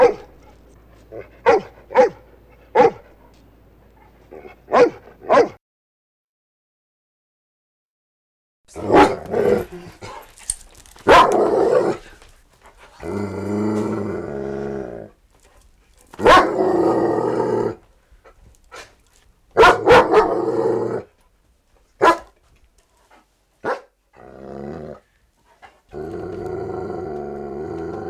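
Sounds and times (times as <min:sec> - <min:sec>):
dog barking: 0:00.0 - 0:00.4, 0:01.2 - 0:03.1, 0:04.4 - 0:05.6, 0:08.8 - 0:09.3, 0:11.0 - 0:12.0, 0:16.2 - 0:16.8, 0:19.6 - 0:20.5, 0:22.0 - 0:22.4, 0:23.6 - 0:23.9
dog growling: 0:08.7 - 0:15.5, 0:16.1 - 0:17.9, 0:19.7 - 0:21.1, 0:24.2 - 0:25.1, 0:25.9 - 0:28.0.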